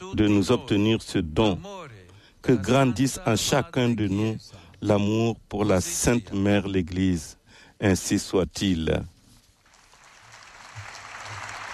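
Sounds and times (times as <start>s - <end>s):
speech: 0.1s - 1.8s, 2.4s - 9.1s
audience applause: 9.7s - 11.7s.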